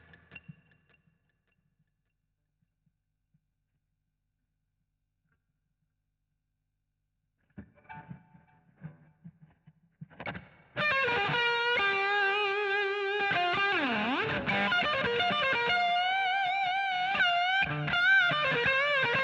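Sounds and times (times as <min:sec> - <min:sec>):
guitar solo: 0:10.1 - 0:19.2.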